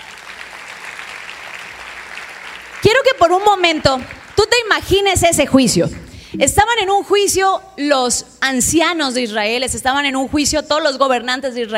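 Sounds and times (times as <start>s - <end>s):
audience applause: 0.0s - 4.7s
speech: 2.8s - 11.7s.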